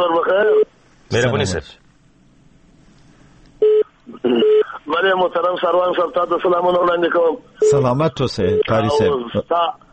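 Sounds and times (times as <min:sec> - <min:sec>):
speech: 0:00.0 - 0:01.8, 0:04.1 - 0:09.8
electronic telephone beep as a call connects: 0:03.6 - 0:04.7.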